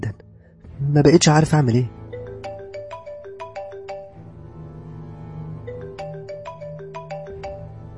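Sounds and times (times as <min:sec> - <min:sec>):
speech: 0:00.9 - 0:02.0
mobile phone ringtone with electronic melody: 0:02.1 - 0:04.4, 0:05.3 - 0:07.9.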